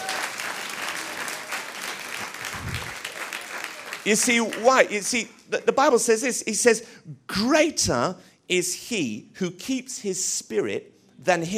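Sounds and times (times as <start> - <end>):
audience applause: 0.0 - 5.2
speech: 4.0 - 11.5.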